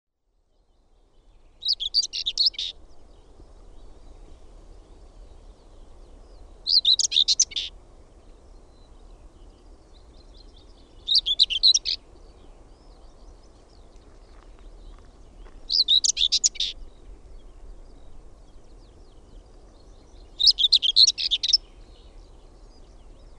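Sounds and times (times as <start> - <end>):
garden warbler singing: 0.8 - 4.2, 4.8 - 23.3.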